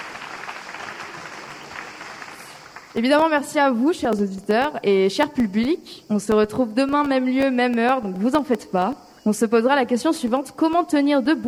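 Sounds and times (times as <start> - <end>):
audience clapping at the close of a spoken talk programme: 0.0 - 3.0
speech: 3.0 - 11.4.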